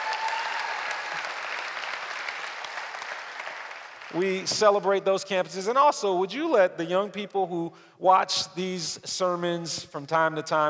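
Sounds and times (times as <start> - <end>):
audience applause: 0.0 - 4.4
speech: 4.1 - 10.6.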